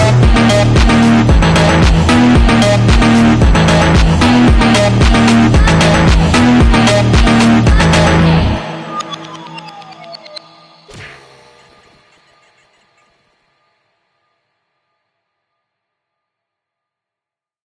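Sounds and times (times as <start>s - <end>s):
drift phonk music: 0.0s - 13.5s.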